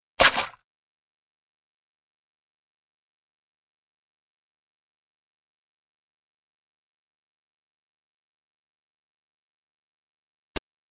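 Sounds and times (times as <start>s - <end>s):
fight sounds: 0.2s - 0.6s.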